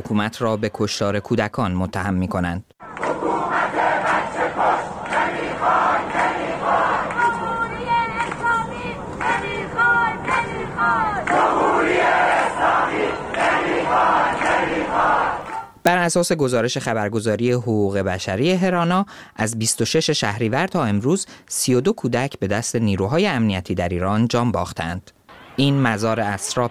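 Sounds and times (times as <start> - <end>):
speech: 0.0 - 2.7, 16.0 - 26.6
crowd chanting slogans against the dictatorship in the streets of Ekbatan: 2.8 - 15.8.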